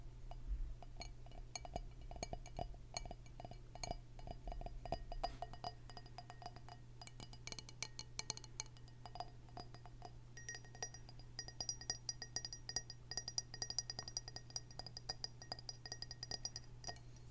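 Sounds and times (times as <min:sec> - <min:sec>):
steady low hum: 0:00.0 - 0:17.2
glass tapping clinks: 0:00.9 - 0:17.2
thin high ringing tone: 0:10.4 - 0:17.2.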